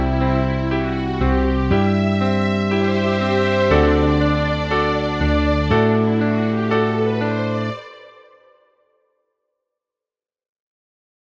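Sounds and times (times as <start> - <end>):
bass: 0.0 - 7.8
violins: 0.0 - 8.6
piano: 0.0 - 8.9.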